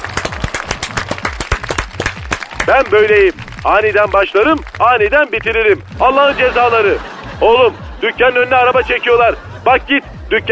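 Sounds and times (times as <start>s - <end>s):
applause sound effect: 0.0s - 7.1s
speech: 2.7s - 10.5s
laughter: 6.0s - 10.5s.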